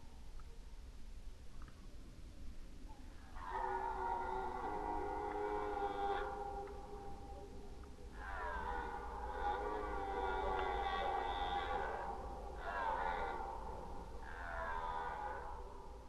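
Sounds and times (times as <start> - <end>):
red deer bellowing: 3.3 - 16.0.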